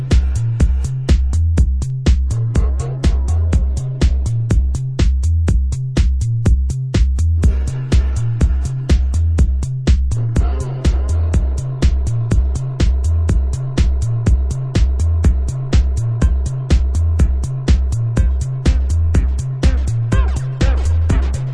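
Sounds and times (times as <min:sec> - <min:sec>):
techno bass tilt: 0:00.0 - 0:21.5.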